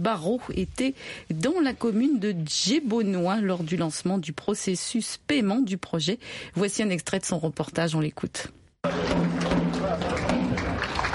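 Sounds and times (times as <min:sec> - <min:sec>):
speech: 0:00.0 - 0:09.2
tam-tam hand drum strikes: 0:08.8 - 0:10.9
dense lively crowd of many voices calling out and cheering: 0:08.8 - 0:11.1.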